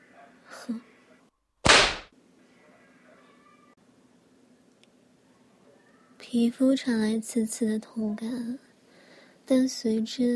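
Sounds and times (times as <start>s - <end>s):
speech: 0.7s - 0.9s, 6.3s - 8.7s, 9.5s - 10.3s
whip lashing across someone's back: 1.6s - 2.1s.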